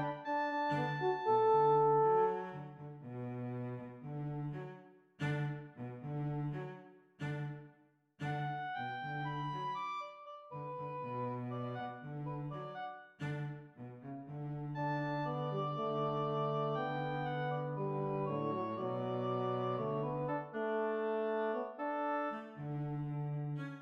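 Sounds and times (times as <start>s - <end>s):
oboe: 0.0s - 3.3s, 8.2s - 13.4s, 14.4s - 23.8s
horn: 0.0s - 4.5s, 10.8s - 23.8s
cello: 0.0s - 23.8s.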